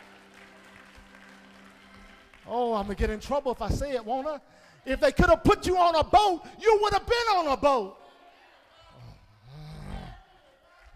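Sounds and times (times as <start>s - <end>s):
audience clapping hands: 0.0s - 4.1s
speech: 2.5s - 8.0s.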